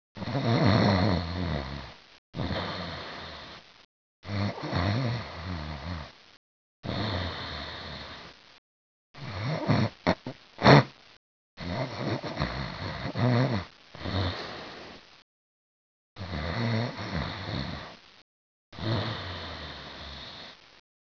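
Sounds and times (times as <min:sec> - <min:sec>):
person snoring: 0:00.2 - 0:03.6, 0:04.2 - 0:06.2, 0:06.8 - 0:08.4, 0:09.2 - 0:10.9, 0:11.6 - 0:15.0, 0:16.2 - 0:18.0, 0:18.8 - 0:20.6.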